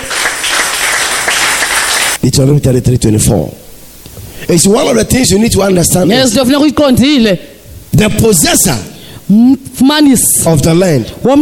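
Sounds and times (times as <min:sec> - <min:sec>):
audience clapping: 0:00.0 - 0:02.2
speech: 0:02.2 - 0:03.6, 0:04.5 - 0:11.4.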